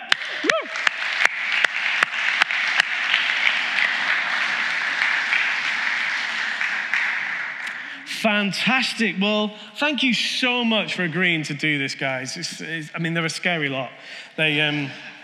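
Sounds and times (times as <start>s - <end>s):
audience round of applause: 0.0s - 8.5s
speech: 8.2s - 15.1s.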